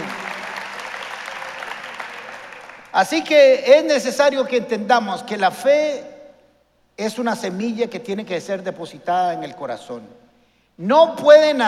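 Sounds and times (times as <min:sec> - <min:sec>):
audience applause: 0:00.0 - 0:02.9
speech: 0:03.0 - 0:06.1, 0:07.0 - 0:10.2, 0:10.8 - 0:11.6.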